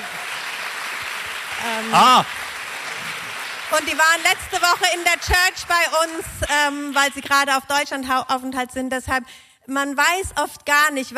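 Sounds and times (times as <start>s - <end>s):
audience applause: 0.0s - 7.4s
speech: 1.6s - 2.4s, 3.7s - 11.1s.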